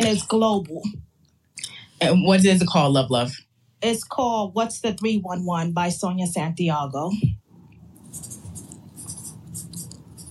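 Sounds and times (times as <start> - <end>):
speech: 0.1 - 1.1, 2.0 - 7.4
pen writing on paper: 8.0 - 10.2.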